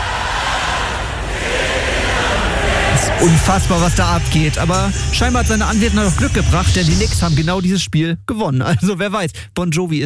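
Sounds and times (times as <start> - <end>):
arena crowd cheering and singing along: 0.0 - 7.5
speech: 3.2 - 10.0.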